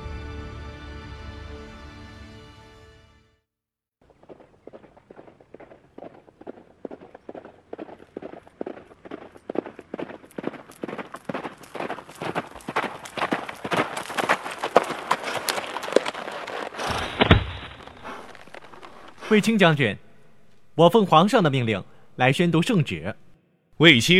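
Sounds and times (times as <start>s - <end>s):
galloping horse hooves: 4.0s - 20.8s
heavy thump: 16.8s - 18.7s
speech: 19.3s - 20.0s, 20.8s - 23.2s, 23.8s - 24.1s.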